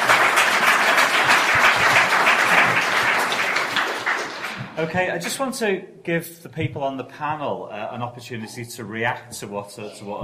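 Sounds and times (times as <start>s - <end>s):
audience round of applause: 0.0s - 4.9s
speech: 4.8s - 10.2s.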